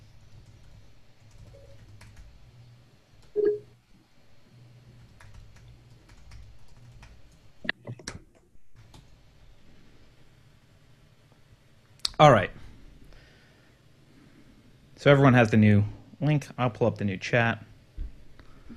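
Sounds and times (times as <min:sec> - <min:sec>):
low steady hum: 0:00.0 - 0:18.7
typing on a computer keyboard: 0:00.3 - 0:02.4, 0:05.0 - 0:07.4
speech: 0:12.2 - 0:12.5, 0:15.0 - 0:17.7.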